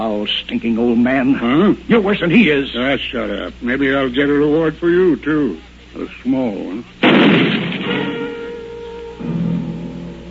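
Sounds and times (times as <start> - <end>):
speech: 0.0 - 8.3
steady humming drone: 0.0 - 10.3
gunshot: 7.0 - 8.4.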